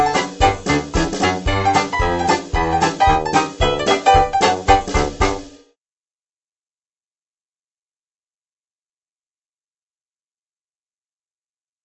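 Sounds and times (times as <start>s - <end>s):
song: 0.0s - 5.6s.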